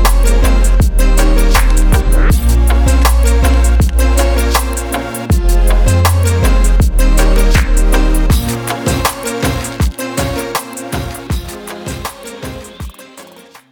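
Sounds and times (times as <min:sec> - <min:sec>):
bass boxing: 0:00.0 - 0:10.4.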